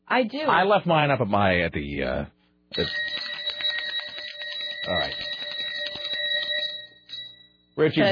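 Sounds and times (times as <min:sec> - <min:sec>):
speech: 0:00.1 - 0:03.2, 0:07.8 - 0:08.0
decorative desk bell being struck: 0:02.7 - 0:08.0.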